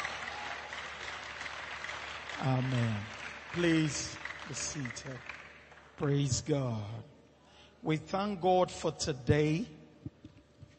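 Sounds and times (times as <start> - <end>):
church congregation clapping in praise: 0.0 - 6.8
speech: 2.4 - 5.4, 6.0 - 7.1, 7.8 - 9.8.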